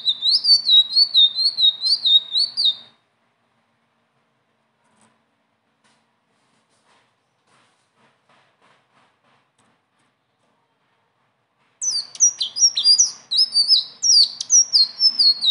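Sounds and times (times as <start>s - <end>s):
leafbird singing: 0.0s - 2.9s, 11.8s - 15.4s.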